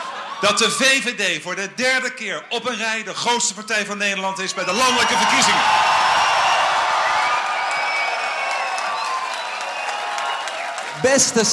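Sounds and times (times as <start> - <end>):
CDA party supporters cheering at an election night party: 0.0 - 1.2, 4.3 - 11.5
speech: 0.4 - 6.2, 11.0 - 11.5
high whistles: 6.2 - 11.0
clapping: 7.2 - 11.4.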